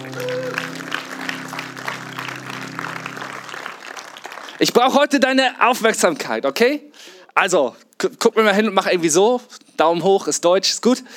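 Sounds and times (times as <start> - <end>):
church audience applause: 0.0 - 4.9
speech: 4.6 - 11.1.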